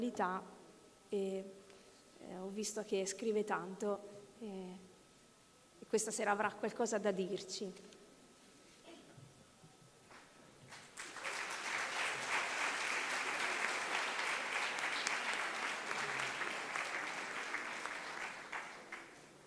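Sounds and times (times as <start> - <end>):
speech: 0.0 - 1.6, 2.2 - 4.9, 5.9 - 8.0
audience applause: 10.7 - 19.4.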